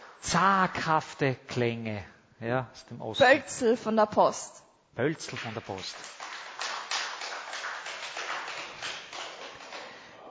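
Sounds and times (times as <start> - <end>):
speech: 0.2 - 6.2
quiet hand claps: 5.3 - 10.0.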